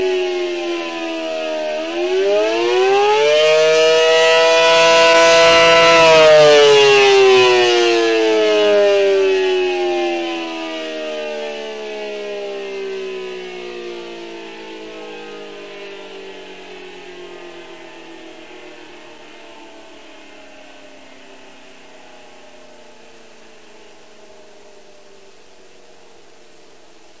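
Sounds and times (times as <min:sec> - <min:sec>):
attack sirens: 0:00.0 - 0:27.1.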